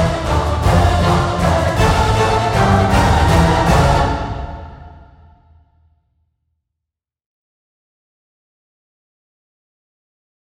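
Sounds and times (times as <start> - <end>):
epic anthem music: 0.0 - 5.6.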